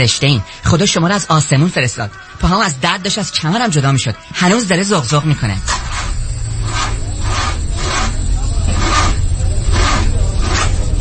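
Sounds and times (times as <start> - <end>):
speech: 0.0 - 6.2
car engine with flat battery cranking and failing to start: 5.3 - 10.9.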